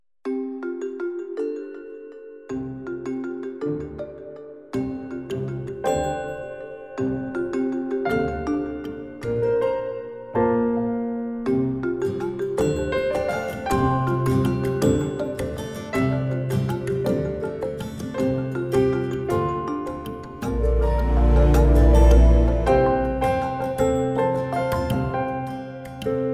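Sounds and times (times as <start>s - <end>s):
mallet percussion: 0.3s - 26.3s.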